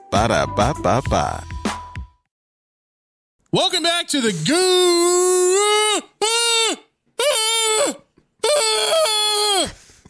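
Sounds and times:
speech: 0.1 - 1.5, 3.5 - 6.8, 7.8 - 9.7
rubber chicken toy squawking as air is let out: 5.2 - 9.8.

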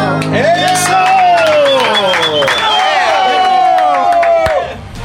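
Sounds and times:
applause that sounds fake: 0.2 - 4.9.

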